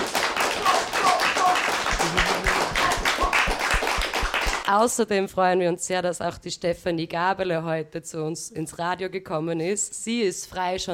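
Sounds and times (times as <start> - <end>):
applause for a studio guest: 0.0 - 4.8
speech: 4.7 - 10.9.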